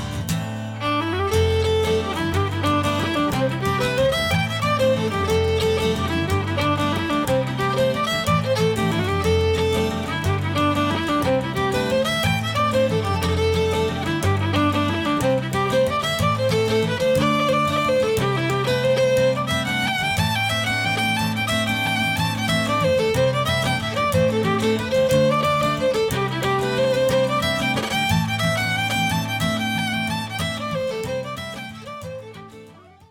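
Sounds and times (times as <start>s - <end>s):
jig tunes: 0.2s - 33.0s.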